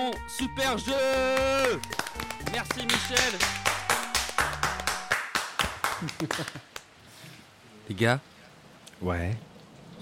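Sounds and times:
speech: 0:00.0 - 0:03.8, 0:06.0 - 0:06.7, 0:07.9 - 0:08.3, 0:09.0 - 0:09.5
small group hand clapping: 0:00.0 - 0:06.9
laughter: 0:05.9 - 0:06.8.

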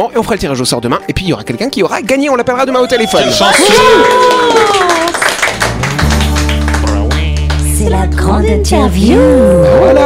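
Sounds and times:
speech: 0:00.0 - 0:05.2, 0:07.9 - 0:10.0
applause: 0:03.2 - 0:08.2.

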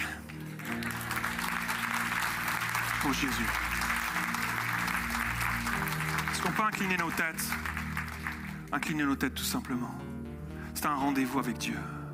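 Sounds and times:
audience applauding: 0:00.0 - 0:09.0
sustained keyboard chords: 0:00.0 - 0:12.1
speech: 0:03.0 - 0:03.7, 0:06.6 - 0:07.7, 0:08.7 - 0:10.1, 0:10.8 - 0:12.0.

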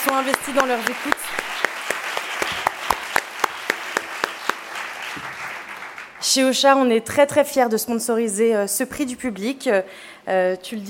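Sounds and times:
audience applause: 0:00.0 - 0:06.3
speech: 0:00.1 - 0:01.5, 0:06.2 - 0:10.8.

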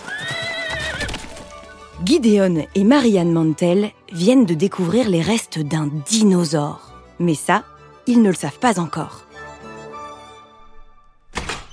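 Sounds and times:
carriage horse neighing: 0:00.0 - 0:01.4
carriage horse hooves clip-clopping: 0:00.0 - 0:02.0
speech: 0:02.0 - 0:09.2.

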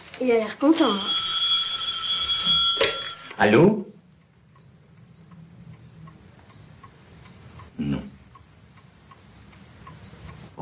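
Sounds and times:
speech: 0:00.2 - 0:01.2, 0:03.4 - 0:03.9
telephone ringing: 0:00.7 - 0:03.7.

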